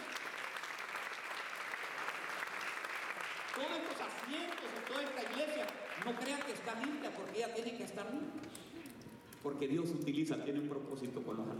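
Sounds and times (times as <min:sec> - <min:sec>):
audience applause: 0:00.0 - 0:08.0
speech: 0:03.6 - 0:11.5.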